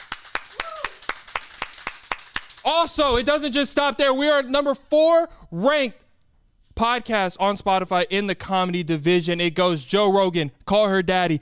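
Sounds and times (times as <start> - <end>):
hand claps: 0.0 - 2.7
vocal whoop: 0.5 - 1.0
speech: 2.6 - 6.0, 6.8 - 11.4.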